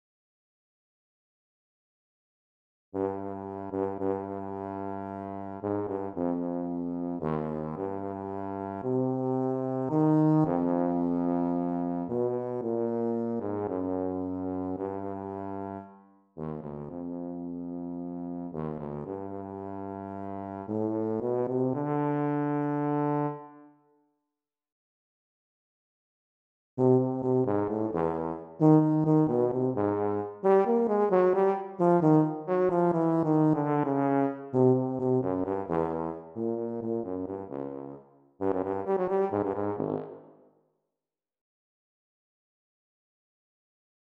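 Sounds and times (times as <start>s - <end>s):
solo tuba serenade: 3.0s - 23.8s, 26.8s - 40.4s.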